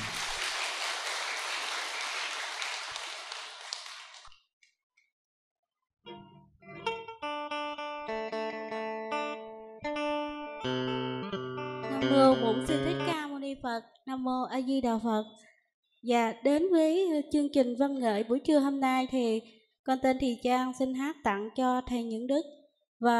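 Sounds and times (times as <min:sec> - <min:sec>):
crowd clapping: 0:00.0 - 0:04.4
instrumental music with sustained tones: 0:06.1 - 0:13.3
speech: 0:12.1 - 0:15.4, 0:16.0 - 0:23.1.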